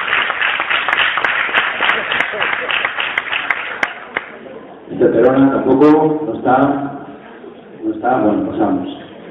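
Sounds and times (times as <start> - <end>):
audience applause: 0.0 - 4.4
speech: 5.1 - 7.0, 7.9 - 9.0.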